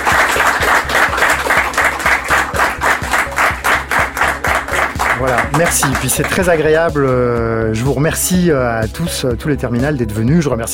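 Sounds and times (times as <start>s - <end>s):
applause: 0.0s - 6.6s
speech: 5.5s - 10.7s.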